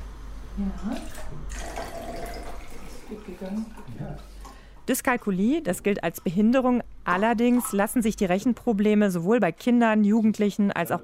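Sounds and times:
speech: 0.6s - 11.0s
liquid poured into a glass: 1.0s - 3.9s.

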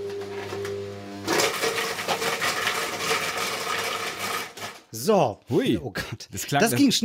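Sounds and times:
blender chopping hard chunks of roasted vegetables: 0.0s - 4.9s
speech: 4.9s - 7.0s.

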